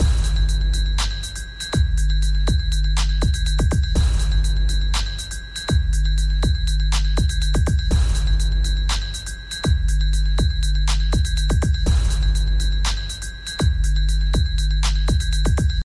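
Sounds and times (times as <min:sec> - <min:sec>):
beat ringtone: 0:00.0 - 0:15.8.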